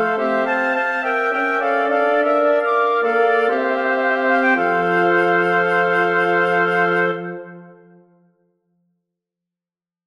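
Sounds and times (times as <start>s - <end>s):
wind quintet playing: 0.0s - 7.9s.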